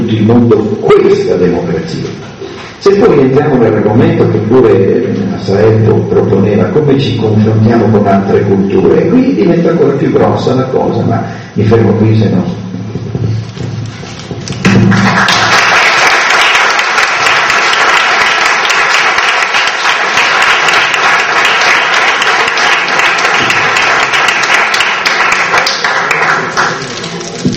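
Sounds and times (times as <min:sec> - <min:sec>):
speech: 0:00.1 - 0:12.6
spontaneous audience applause in a hall: 0:14.6 - 0:27.4.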